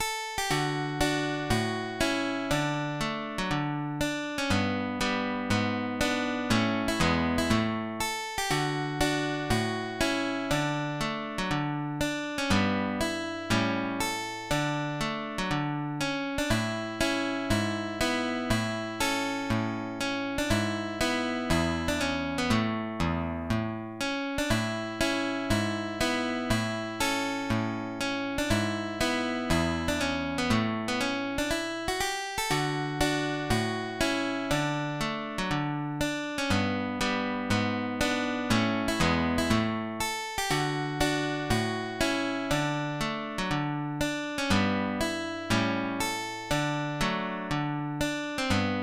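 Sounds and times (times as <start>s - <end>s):
guitar playing a march: 0.0s - 48.8s.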